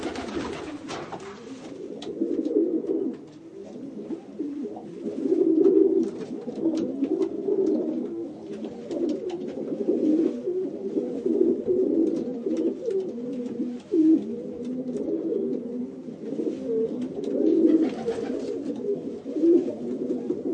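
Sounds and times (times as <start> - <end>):
pigeons cooing: 0.0 - 20.5.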